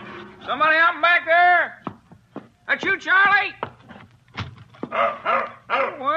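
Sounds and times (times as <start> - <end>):
speech: 0.5 - 1.8, 2.7 - 3.7, 4.9 - 6.1
dog barking outside back door: 4.9 - 6.1.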